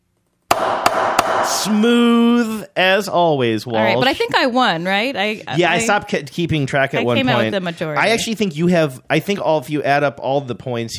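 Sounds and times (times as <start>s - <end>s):
judge's gavel strike: 0.5s - 1.8s
speech: 1.5s - 10.9s.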